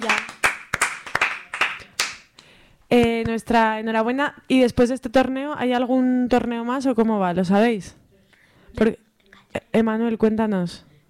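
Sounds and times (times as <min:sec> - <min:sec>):
people clapping: 0:00.0 - 0:02.5
speech: 0:02.9 - 0:08.0, 0:08.7 - 0:09.0, 0:09.8 - 0:10.9.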